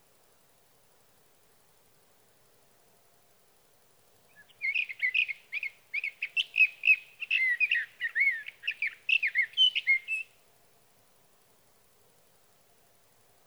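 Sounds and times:
faint low background hiss: 0:00.0 - 0:13.4
sage thrasher warbling song: 0:04.4 - 0:10.3.

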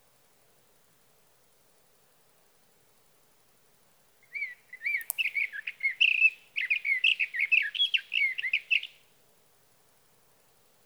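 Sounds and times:
Sage thrasher song: 0:04.2 - 0:09.0
click: 0:05.0 - 0:05.4.

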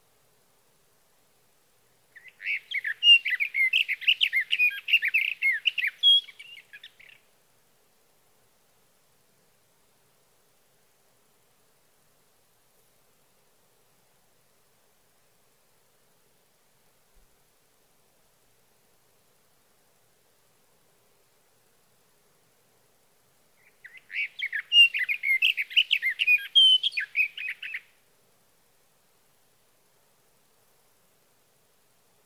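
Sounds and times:
sage thrasher: 0:02.2 - 0:07.2, 0:23.6 - 0:27.9.

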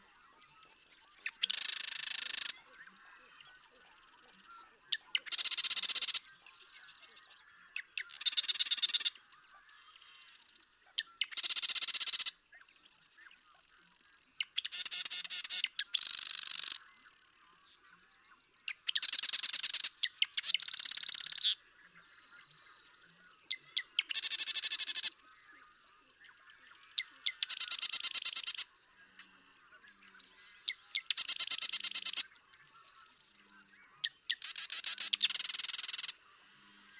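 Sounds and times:
Marsh Wren singing clicks and rattles: 0:01.2 - 0:02.6, 0:05.2 - 0:06.2, 0:07.9 - 0:09.1, 0:11.2 - 0:12.3, 0:14.5 - 0:16.8, 0:18.8 - 0:21.6, 0:24.0 - 0:25.1, 0:27.0 - 0:28.6, 0:31.0 - 0:32.2, 0:34.3 - 0:36.1.

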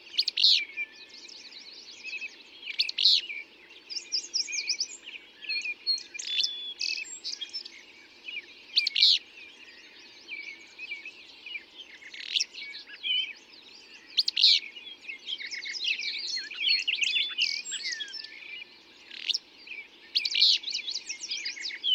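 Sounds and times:
dawn chorus of birds singing: 0:00.0 - 0:21.9.

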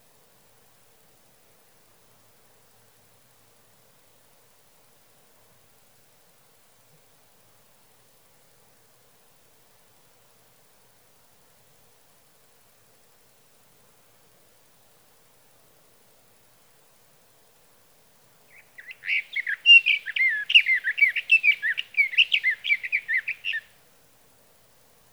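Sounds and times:
Sage Thrasher singing through the night: 0:18.5 - 0:23.6.

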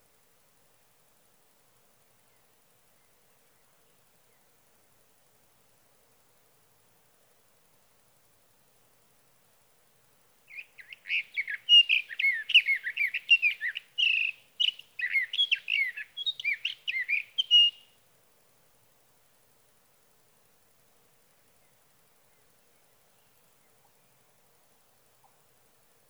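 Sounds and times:
Sage thrasher singing through the night: 0:10.5 - 0:17.9.

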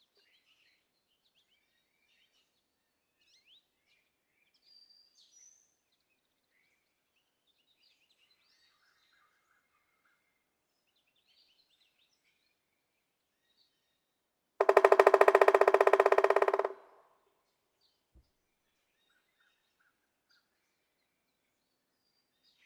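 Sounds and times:
Pileated woodpecker rapid series of sharp knocks: 0:14.6 - 0:17.0.

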